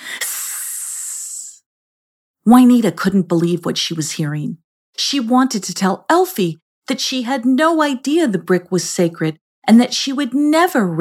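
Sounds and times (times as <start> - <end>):
snake hissing: 0.0 - 1.6
speech: 2.4 - 10.9.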